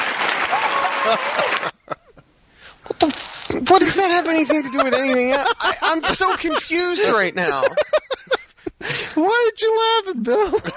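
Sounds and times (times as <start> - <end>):
applause sound effect: 0.0 - 1.8
laughter: 0.5 - 2.2, 3.7 - 9.2, 10.3 - 10.7
speech: 1.0 - 1.8, 3.0 - 8.0, 9.2 - 10.7.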